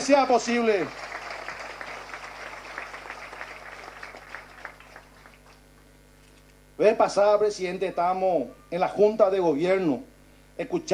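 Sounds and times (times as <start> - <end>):
speech: 0.0 - 1.1, 6.8 - 10.9
audience clapping: 0.0 - 5.7.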